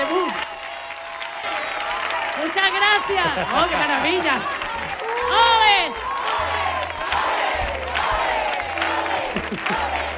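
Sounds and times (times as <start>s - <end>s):
loud audience applause and ovation: 0.0s - 10.1s
speech: 2.5s - 4.6s
laughter: 2.9s - 5.3s, 8.9s - 10.1s.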